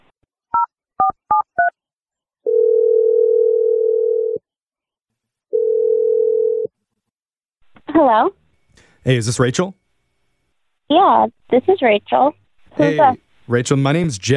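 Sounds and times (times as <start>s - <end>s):
telephone ringing tones: 2.5s - 4.4s, 5.5s - 6.7s
speech: 8.0s - 8.4s, 9.0s - 9.8s, 10.9s - 14.3s.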